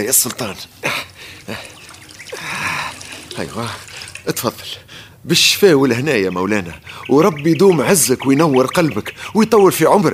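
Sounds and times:
speech: 0:00.0 - 0:01.7, 0:03.4 - 0:10.1
drink being poured for a sultan: 0:00.9 - 0:04.8.

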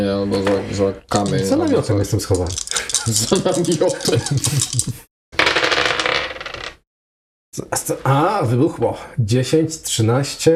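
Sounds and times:
speech: 0:00.2 - 0:05.1, 0:07.6 - 0:10.5
dice rolling on a table: 0:01.2 - 0:06.8
laughter: 0:02.7 - 0:05.1.

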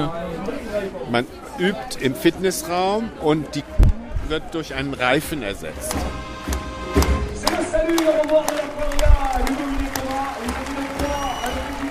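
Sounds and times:
murmur of voices: 0:00.0 - 0:11.9
speech: 0:00.8 - 0:06.6, 0:07.7 - 0:10.6
scattered clapping from an audience: 0:05.9 - 0:11.9.

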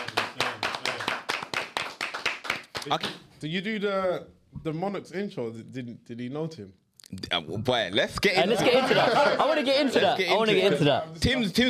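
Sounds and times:
small group clapping in a studio: 0:00.0 - 0:03.3
speech: 0:02.8 - 0:11.6
laughter: 0:08.4 - 0:10.2.

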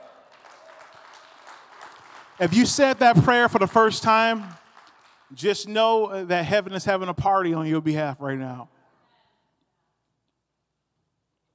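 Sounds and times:
audience clapping: 0:00.0 - 0:06.2
speech: 0:02.4 - 0:04.6, 0:05.3 - 0:08.8.

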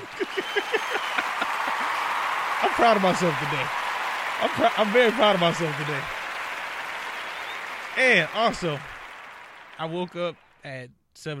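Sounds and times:
laughter: 0:00.0 - 0:06.4, 0:07.9 - 0:08.9
one person clapping: 0:00.0 - 0:10.4
speech: 0:02.6 - 0:03.8, 0:04.4 - 0:06.2, 0:08.0 - 0:08.9, 0:09.8 - 0:11.3.

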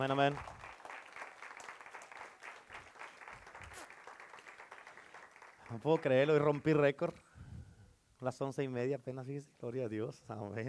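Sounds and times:
speech: 0:00.0 - 0:00.6, 0:05.7 - 0:07.2, 0:08.2 - 0:10.6
audience applause: 0:00.0 - 0:06.4.

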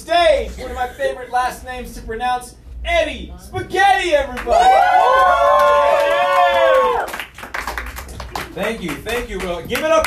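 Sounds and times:
speech: 0:00.1 - 0:07.2, 0:08.6 - 0:10.0
audience applause: 0:04.4 - 0:10.0
loud sustained whoop: 0:04.5 - 0:07.2.

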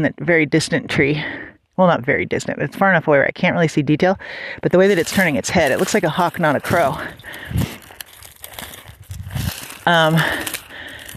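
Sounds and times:
speech: 0:00.0 - 0:07.8, 0:09.8 - 0:10.6
dry grass crunching underfoot: 0:04.6 - 0:11.1.

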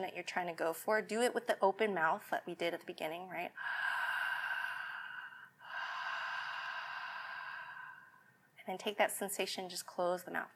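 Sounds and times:
speech: 0:00.0 - 0:04.0, 0:08.7 - 0:10.5
ujjayi yoga breathing through a constricted back of the throat: 0:03.6 - 0:08.3.

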